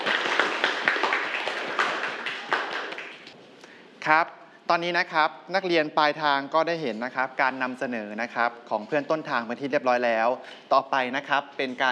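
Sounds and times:
classroom students clapping: 0.0s - 3.4s
speech: 4.1s - 11.8s.

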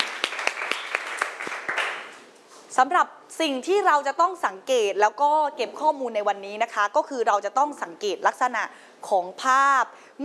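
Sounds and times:
classroom applause for a student group's representative: 0.0s - 2.2s
speech: 2.8s - 10.2s.

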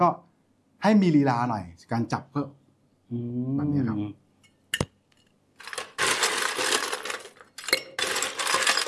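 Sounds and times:
speech: 0.0s - 0.2s, 0.8s - 4.2s
ice cubes scooped into a glass for a drink: 5.6s - 8.8s.

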